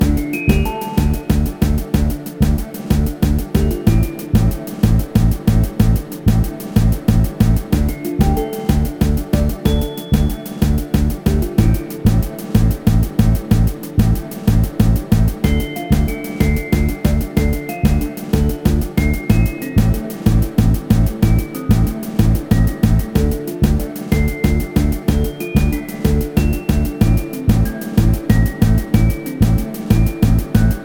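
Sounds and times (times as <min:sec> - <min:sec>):
music loop: 0:00.0 - 0:30.8.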